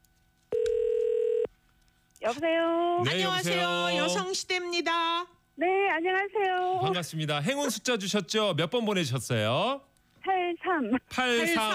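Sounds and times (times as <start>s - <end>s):
telephone tone as a call is placed: 0.5s - 1.5s
speech: 2.3s - 9.9s, 10.5s - 11.7s.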